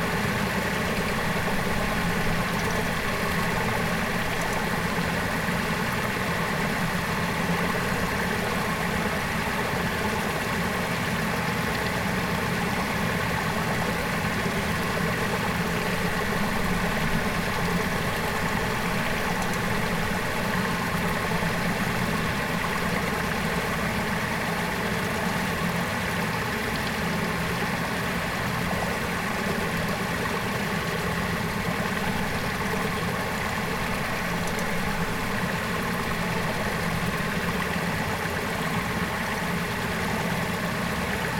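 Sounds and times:
flowing water, rivers and lagoons in the Andean highlands of Peru: 0.0 - 41.3.

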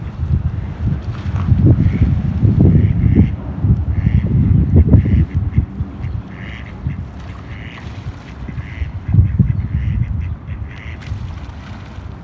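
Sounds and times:
low rumble, possibly a passing boat: 0.0 - 10.5
birds calling across the water on a canal: 1.7 - 11.1.

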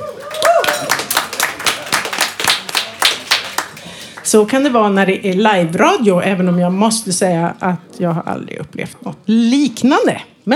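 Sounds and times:
applause: 0.0 - 4.4
speech: 4.3 - 10.5.

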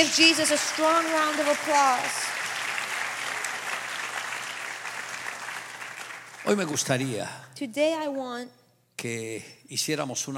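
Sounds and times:
speech: 0.0 - 2.4, 6.5 - 10.3
audience applause: 0.0 - 7.2.

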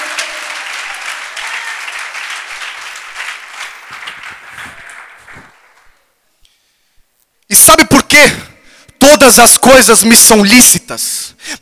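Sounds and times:
audience applause: 0.0 - 6.0
speech: 7.5 - 8.4, 9.3 - 11.5.

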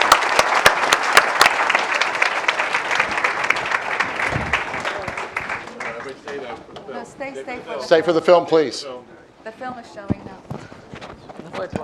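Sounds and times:
audience applause: 0.0 - 6.5
speech: 7.2 - 10.3, 11.6 - 11.8.

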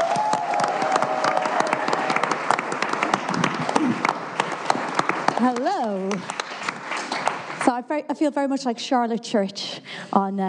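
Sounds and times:
audience applause: 0.0 - 7.6
speech: 5.4 - 6.4, 7.7 - 10.4.

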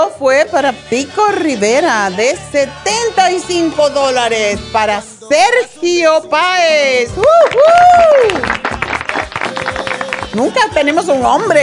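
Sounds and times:
speech: 0.2 - 8.6, 10.3 - 11.6
whoops and cheers: 7.1 - 8.6
hand claps: 7.2 - 10.6.

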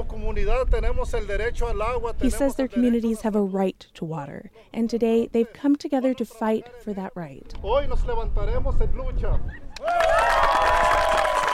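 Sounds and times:
speech: 0.3 - 10.3
crowd applauding: 9.8 - 11.5
supportive shouts: 9.8 - 11.5.

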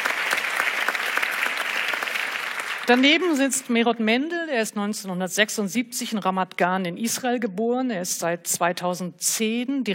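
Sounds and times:
audience applause: 0.0 - 3.0
speech: 2.9 - 9.9.

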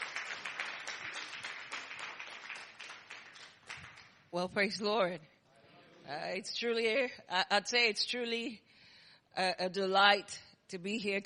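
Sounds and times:
audience applause: 0.0 - 4.1
speech: 4.3 - 5.4, 6.1 - 8.7, 9.4 - 11.2.

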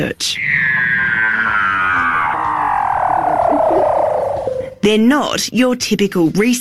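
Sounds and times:
speech: 0.0 - 0.4, 4.8 - 6.5
Weddell seal underwater vocalisations: 0.4 - 4.8.

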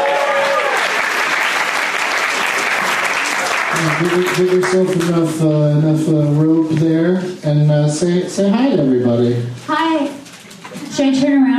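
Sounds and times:
audience applause: 0.0 - 5.5
speech: 3.8 - 10.2, 11.0 - 11.5.

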